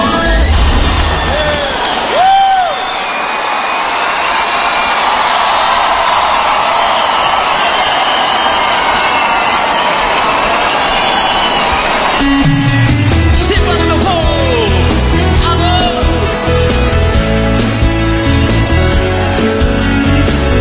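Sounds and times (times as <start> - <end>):
rising-and-falling whistle: 0.1 - 3.8, 6.9 - 12.4
crowd applauding: 0.5 - 20.5.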